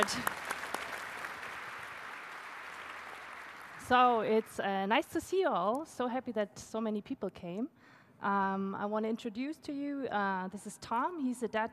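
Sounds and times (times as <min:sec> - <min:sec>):
speech: 0:00.0 - 0:00.4, 0:03.9 - 0:11.7
audience applause: 0:00.0 - 0:04.1.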